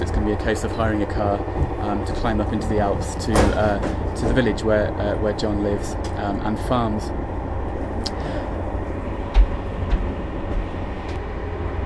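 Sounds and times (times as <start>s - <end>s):
passenger train in motion: 0.0s - 11.8s
speech: 0.3s - 7.2s
brief knocks and rattles: 1.5s - 4.8s.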